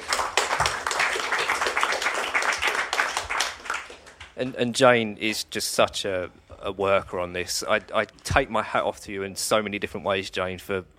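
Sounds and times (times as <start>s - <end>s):
audience applause: 0.0s - 4.4s
speech: 4.4s - 10.9s.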